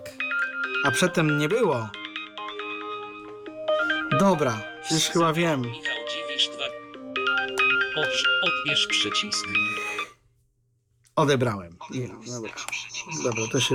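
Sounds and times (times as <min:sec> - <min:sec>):
phone ringtone: 0:00.2 - 0:10.1
speech: 0:00.8 - 0:02.0, 0:04.2 - 0:06.5, 0:08.0 - 0:10.0, 0:11.2 - 0:13.7.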